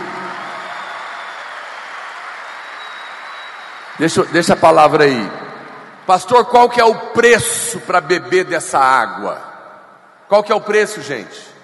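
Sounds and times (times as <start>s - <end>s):
crowd applauding loudly: 0.0s - 6.5s
speech: 4.0s - 5.4s, 6.1s - 9.5s, 10.3s - 11.5s.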